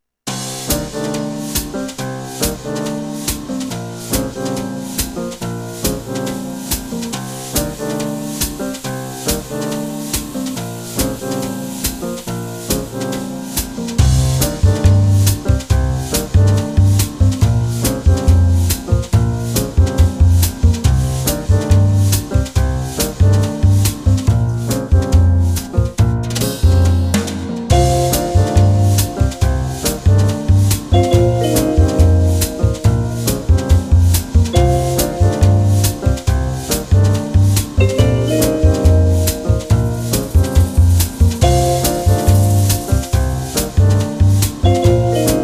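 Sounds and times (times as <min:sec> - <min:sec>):
lounge music: 0:00.3 - 0:45.4.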